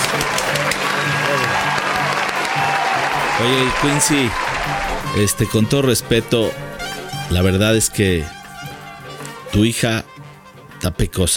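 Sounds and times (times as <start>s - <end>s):
crowd applause: 0.0s - 5.6s
speech: 3.4s - 6.7s, 7.3s - 8.4s, 9.5s - 10.1s, 10.8s - 11.3s.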